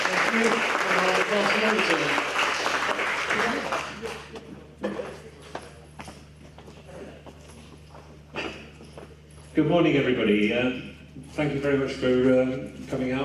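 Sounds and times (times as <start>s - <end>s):
audience applause: 0.0s - 4.4s
speech: 0.3s - 2.4s, 9.6s - 13.2s.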